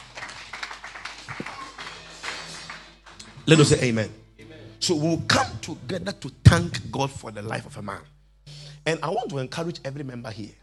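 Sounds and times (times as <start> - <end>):
audience clapping: 0.0 - 4.0
speech: 3.5 - 4.2, 4.8 - 8.2, 8.8 - 10.6.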